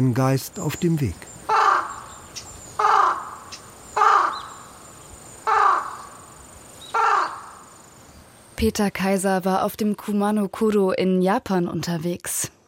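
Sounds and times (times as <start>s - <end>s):
speech: 0.0s - 1.3s, 8.6s - 12.6s
crow cawing: 1.4s - 7.8s.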